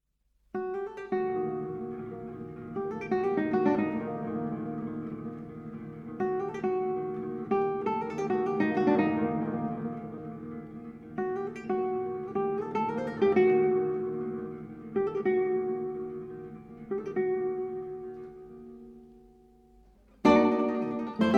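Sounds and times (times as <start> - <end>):
guitar quartet playing: 1.2 - 19.1, 20.2 - 21.3.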